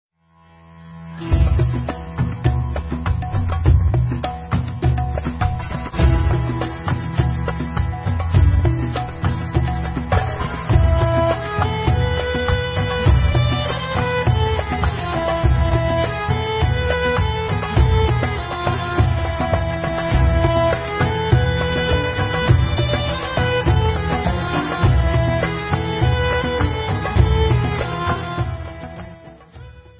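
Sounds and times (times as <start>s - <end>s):
instrumental Israeli dance music: 1.2s - 29.9s.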